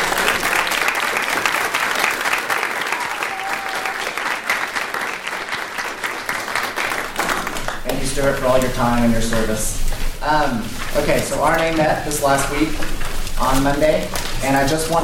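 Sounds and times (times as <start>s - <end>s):
steady dense applause from a group: 0.0s - 10.1s
speech: 8.2s - 15.0s.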